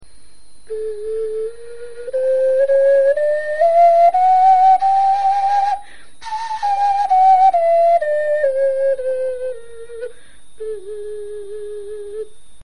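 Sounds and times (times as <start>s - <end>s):
bone flute playing a scale: 0.7s - 12.3s.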